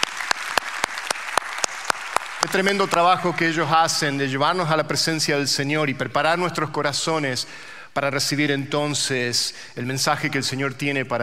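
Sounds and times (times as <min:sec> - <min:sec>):
audience applause: 0:00.0 - 0:03.2
speech: 0:02.5 - 0:11.2.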